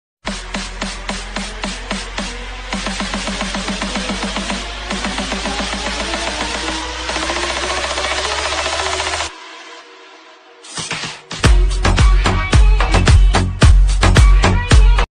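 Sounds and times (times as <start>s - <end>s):
English rap DJ remix mashup: 0.2s - 15.1s.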